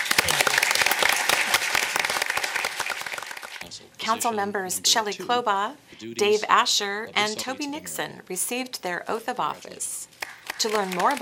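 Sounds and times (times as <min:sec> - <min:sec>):
applause: 0:00.0 - 0:03.7, 0:10.2 - 0:11.2
speech: 0:04.1 - 0:10.0, 0:10.6 - 0:11.2.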